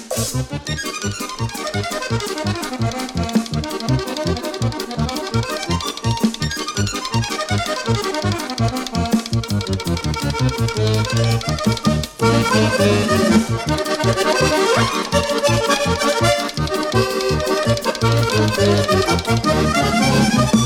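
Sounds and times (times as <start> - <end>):
musette ragtime etude: 0.1 - 20.6.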